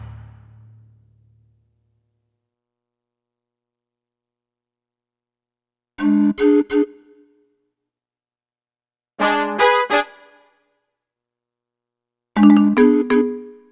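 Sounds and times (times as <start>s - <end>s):
forest music at 150 bpm: 0.0s - 1.4s, 9.2s - 10.6s, 12.4s - 13.7s.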